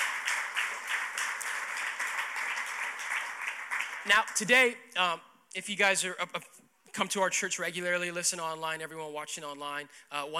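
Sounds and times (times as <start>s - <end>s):
audience clapping hands: 0.0s - 4.6s
speech: 4.0s - 10.3s.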